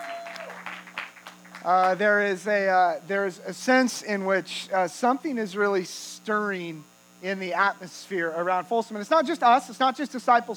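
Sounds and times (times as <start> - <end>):
quiet church congregation applause: 0.0 - 2.0
low steady hum: 0.0 - 10.5
speech: 1.6 - 10.5.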